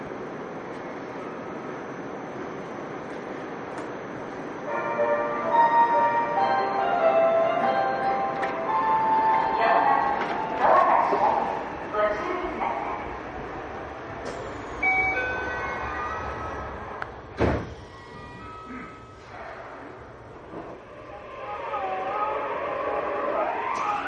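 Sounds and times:
Yokohama Municipal Subway 3000R train running between Kannai and Azamino: 0.0 - 24.0
voices: 9.2 - 13.3, 20.9 - 24.0.

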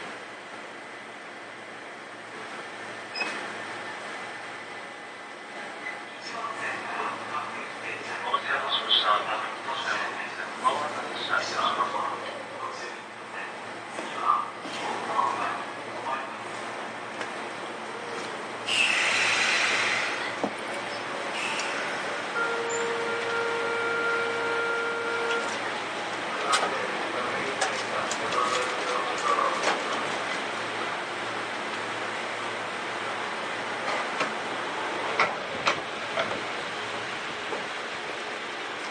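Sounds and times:
Sotetsu 7000 series train ride between Yokohama and Yamato: 0.0 - 38.9
sharp hiss: 18.7 - 20.2.

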